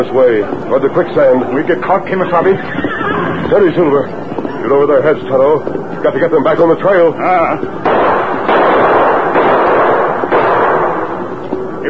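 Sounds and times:
speech: 0.0 - 8.9
gunshots: 7.8 - 11.4.

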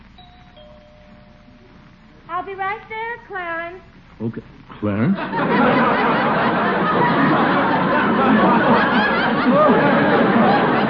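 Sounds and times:
doorbell chiming: 0.2 - 1.8
speech: 2.4 - 7.6
laughter: 4.9 - 10.8.

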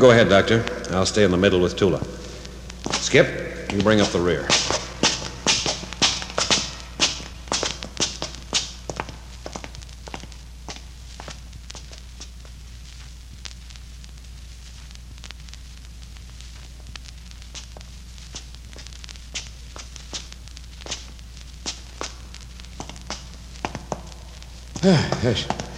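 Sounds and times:
speech: 0.0 - 2.2, 3.0 - 4.6
footsteps of several people climbing a long flight of steps: 2.2 - 12.3, 22.8 - 25.7.

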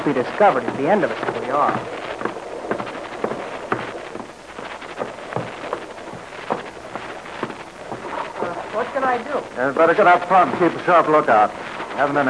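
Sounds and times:
speech: 0.0 - 2.0, 9.0 - 12.2
low wind rumble: 0.0 - 12.2
rain on a boat at night: 0.0 - 12.2.

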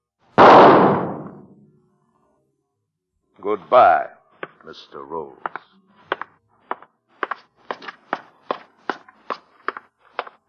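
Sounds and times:
gunshot: 0.4 - 1.6
speech: 3.4 - 5.7.

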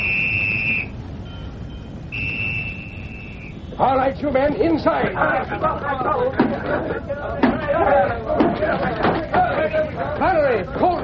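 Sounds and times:
police signal whistle: 0.0 - 3.9
speech: 3.8 - 11.0
laughter: 4.6 - 11.0.

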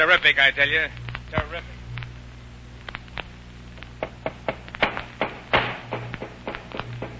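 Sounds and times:
speech: 0.0 - 1.8
hammering a wooden crate shut: 4.0 - 7.1.

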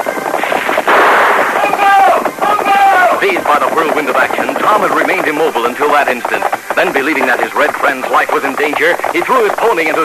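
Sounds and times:
continuous noise: 0.0 - 10.0
rifle and Colt revolver gunshots in a Western radio drama: 0.3 - 3.2
speech: 3.5 - 10.0.

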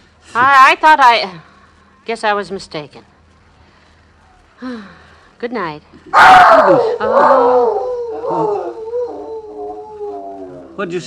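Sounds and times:
speech: 0.4 - 1.5, 2.1 - 3.1, 4.6 - 8.7, 10.8 - 11.0
dog howling: 6.2 - 10.8.

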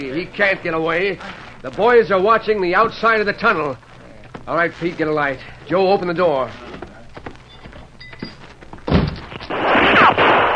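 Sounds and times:
speech: 0.0 - 3.9, 4.5 - 6.8
gunshot: 8.9 - 10.5.

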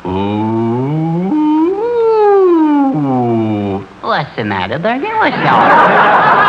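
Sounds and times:
voice imitating a fire siren: 0.0 - 3.7
speech: 4.2 - 6.4
laughter: 5.3 - 6.4.

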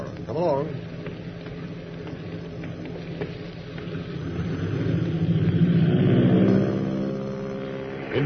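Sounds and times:
bomber planes thundering down the runway: 0.0 - 8.2.

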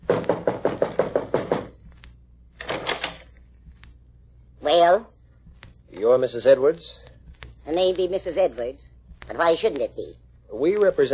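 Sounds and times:
knocking on a door: 0.0 - 1.8
speech: 4.7 - 5.1, 6.0 - 7.0, 7.7 - 11.1.

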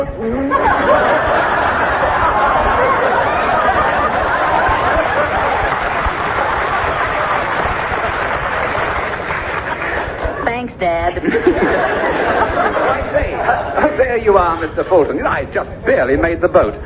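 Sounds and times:
speech: 0.0 - 0.5, 14.1 - 16.8
people laughing: 0.5 - 15.4
large crowd cheering: 0.6 - 10.5, 11.4 - 14.0.

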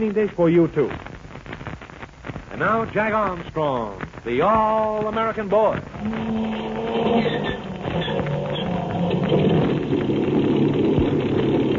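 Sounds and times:
speech: 0.0 - 1.1, 2.6 - 8.5
amphibian plane motors starting up: 6.0 - 11.7.

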